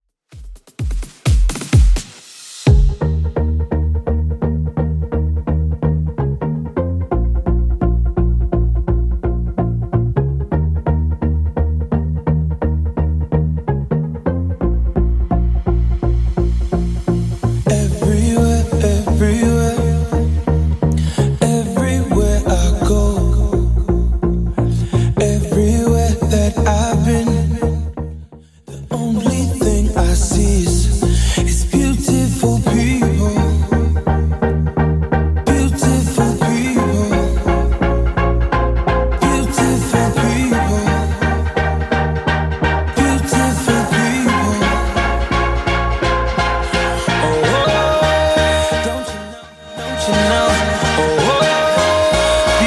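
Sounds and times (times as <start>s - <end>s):
electronic dance track at 128 bpm: 0.3s - 28.0s, 29.0s - 52.6s.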